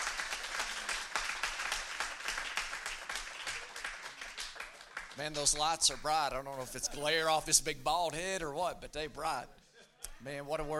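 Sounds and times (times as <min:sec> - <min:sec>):
audience clapping: 0:00.0 - 0:06.2
speech: 0:05.2 - 0:09.6, 0:10.2 - 0:10.7.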